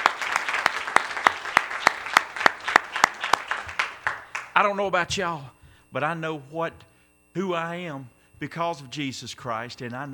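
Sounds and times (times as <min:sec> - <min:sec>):
audience clapping in unison: 0:00.0 - 0:04.7
speech: 0:04.6 - 0:10.1.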